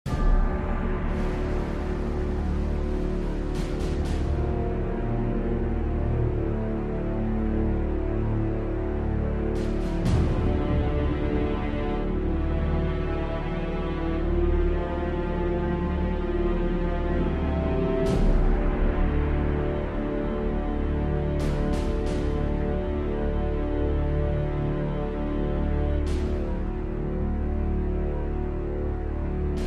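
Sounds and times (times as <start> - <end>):
ambient music: 0.0 - 29.6.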